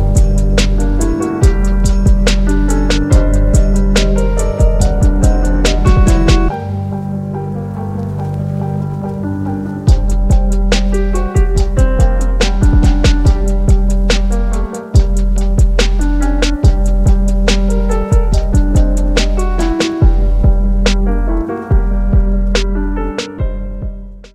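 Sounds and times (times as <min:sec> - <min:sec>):
808 drum machine: 0:00.0 - 0:06.5, 0:09.9 - 0:24.3
pianos: 0:00.0 - 0:24.3.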